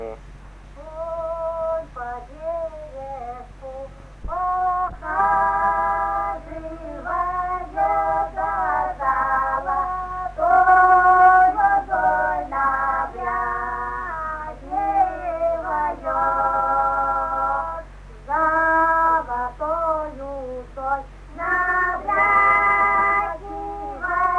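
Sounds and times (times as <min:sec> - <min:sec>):
folk song singing from Makovskoe: 0:00.7 - 0:24.3.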